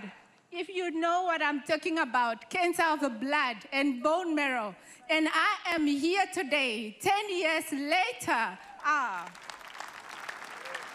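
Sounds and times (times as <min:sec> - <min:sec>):
speech: 0:00.0 - 0:09.4
audience clapping: 0:08.8 - 0:10.9.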